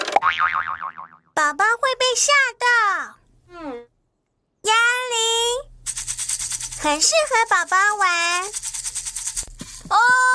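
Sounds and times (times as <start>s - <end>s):
jack-in-the-box spring boing: 0.1s - 1.3s
speech: 1.4s - 3.9s, 6.8s - 8.7s, 9.9s - 10.3s.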